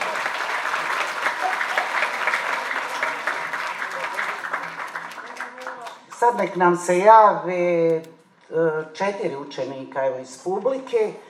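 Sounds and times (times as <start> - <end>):
audience of pupils applauding at a school event: 0.0 - 6.3
speech: 6.2 - 11.2.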